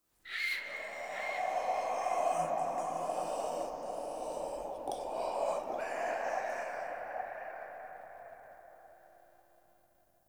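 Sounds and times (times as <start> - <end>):
whisper in a room: 0.3 - 8.4.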